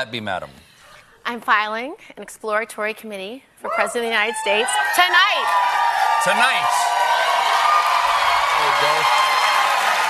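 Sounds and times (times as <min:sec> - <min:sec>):
speech: 0:00.0 - 0:00.7, 0:01.3 - 0:07.0, 0:08.8 - 0:09.2
large audience applause: 0:05.4 - 0:10.0.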